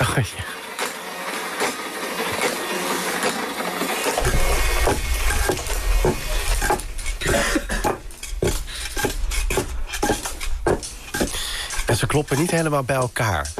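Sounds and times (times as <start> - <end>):
mechanical printer whirring and clattering: 0.0 - 13.5
speech: 0.2 - 0.5, 12.1 - 13.5
clock ticking: 6.0 - 13.5
sharp hollow knocks of a wooden clog: 7.8 - 11.4.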